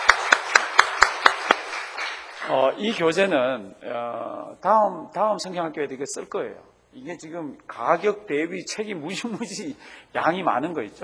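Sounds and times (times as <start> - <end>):
church congregation clapping in thanks: 0.0 - 3.2
speech: 2.5 - 11.0.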